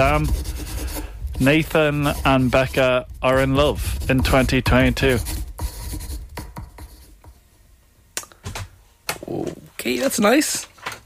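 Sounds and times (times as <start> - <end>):
speech: 0.0 - 0.6, 1.4 - 5.4, 9.3 - 10.7
pen scribbling on paper: 0.0 - 7.2.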